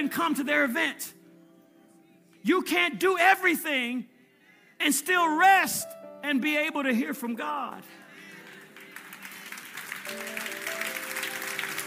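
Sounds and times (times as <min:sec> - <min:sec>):
speech: 0:00.0 - 0:01.2, 0:02.4 - 0:04.1, 0:04.8 - 0:08.0
audience applause: 0:08.3 - 0:11.8.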